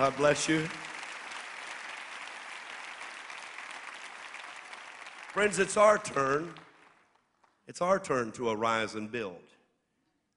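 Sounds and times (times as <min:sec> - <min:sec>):
speech: 0:00.0 - 0:00.8, 0:05.4 - 0:06.6, 0:07.7 - 0:09.6
audience applause: 0:00.0 - 0:07.6.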